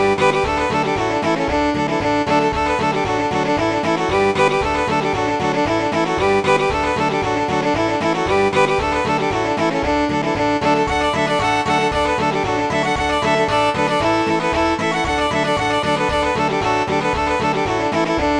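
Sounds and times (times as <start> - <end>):
schottische dance music played on midi: 0.0 - 18.3.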